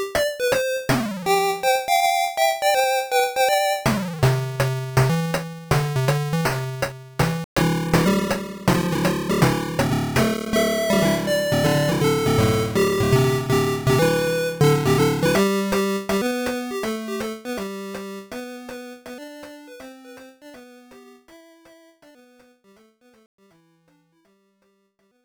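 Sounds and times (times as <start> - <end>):
traditional tune played on a Tandy 1000: 0.2 - 18.4.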